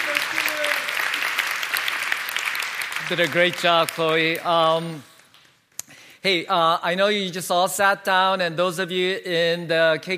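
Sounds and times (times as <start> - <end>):
crowd clapping: 0.0 - 5.4
speech: 3.1 - 5.1, 6.2 - 10.1.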